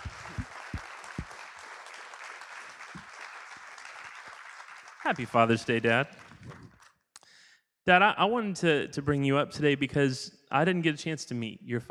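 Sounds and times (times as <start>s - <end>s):
deeper thumps: 0.0s - 1.3s
crowd applauding: 0.0s - 6.9s
speech: 5.0s - 6.3s, 7.9s - 11.8s.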